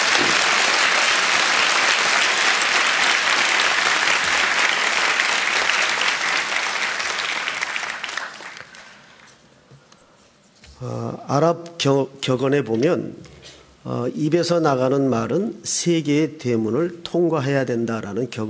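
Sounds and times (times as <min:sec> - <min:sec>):
audience applause: 0:00.0 - 0:09.3
speech: 0:10.8 - 0:18.4.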